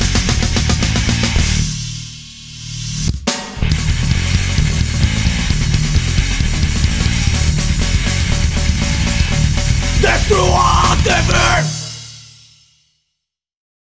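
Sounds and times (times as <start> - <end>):
distortion: 1.1 - 11.9.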